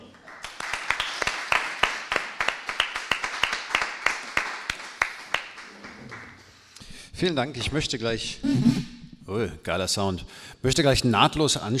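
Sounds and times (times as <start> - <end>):
small audience applause: 0.0 - 6.6
speech: 7.2 - 11.7.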